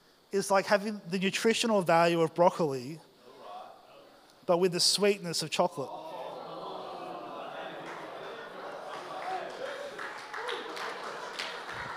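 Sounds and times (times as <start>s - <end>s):
speech: 0.3s - 3.1s, 4.5s - 6.0s
laughter: 5.9s - 11.9s
one person clapping: 8.9s - 11.9s.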